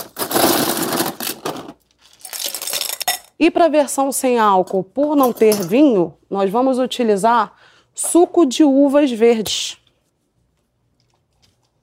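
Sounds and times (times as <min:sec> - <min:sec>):
ice cubes dropped into a drink: 0:00.3 - 0:03.3
speech: 0:03.4 - 0:09.8.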